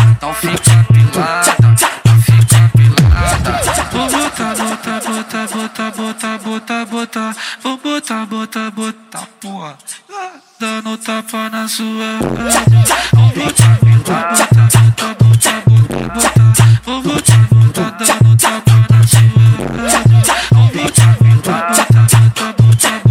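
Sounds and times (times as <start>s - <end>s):
funk bass: 0.0s - 4.2s, 12.2s - 23.0s.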